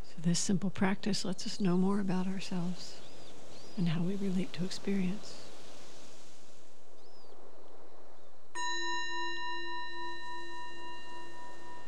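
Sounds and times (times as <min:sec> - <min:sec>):
speech: 0:00.2 - 0:03.0, 0:03.8 - 0:05.5
meditation bell: 0:08.6 - 0:11.8.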